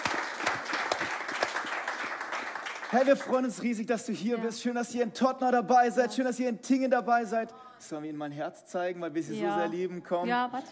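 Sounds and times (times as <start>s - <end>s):
audience applause: 0.0s - 3.7s
speech: 2.9s - 10.7s.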